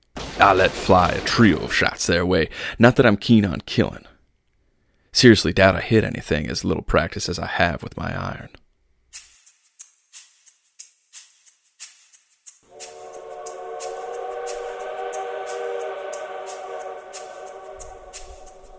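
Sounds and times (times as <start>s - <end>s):
speech: 0.4s - 4.1s, 5.2s - 8.6s
distant loud high-pitched whistle hoot: 12.7s - 18.7s.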